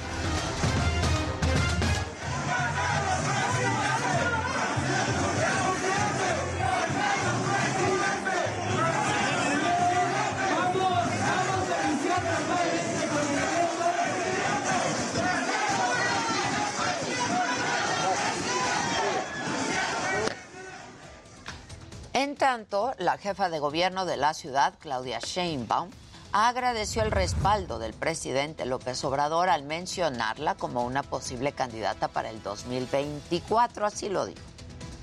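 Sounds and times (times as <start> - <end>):
crowd ovation at a rally in Acatlán: 0.3 - 21.0
speech: 22.6 - 34.5.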